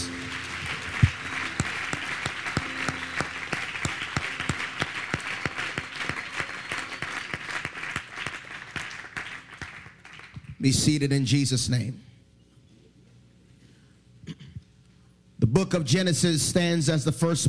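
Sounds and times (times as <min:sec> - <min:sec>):
audience hand clap of praise: 0:00.0 - 0:10.7
speech: 0:10.6 - 0:12.1, 0:15.6 - 0:17.4.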